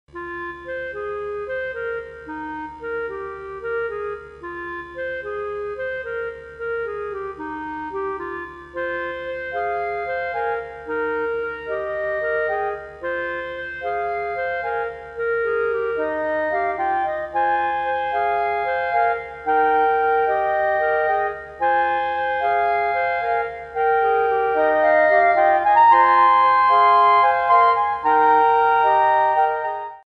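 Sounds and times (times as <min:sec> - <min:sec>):
four clarinets playing divisions on a ground: 0:00.2 - 0:30.0.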